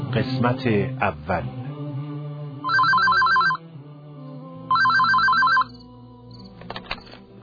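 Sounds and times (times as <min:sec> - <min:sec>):
speech: 0:00.2 - 0:01.6
telephone ringing with an incoming call: 0:02.6 - 0:03.6, 0:04.7 - 0:05.8.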